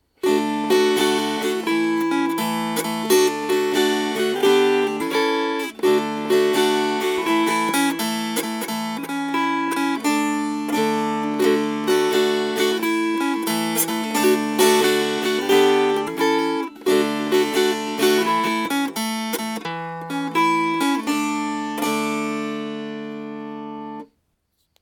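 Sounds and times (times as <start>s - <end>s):
strummed strings: 0.2s - 24.1s.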